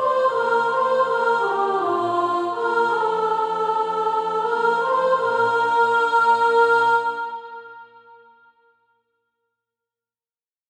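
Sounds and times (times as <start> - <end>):
soprano singing practice music: 0.0 - 8.0.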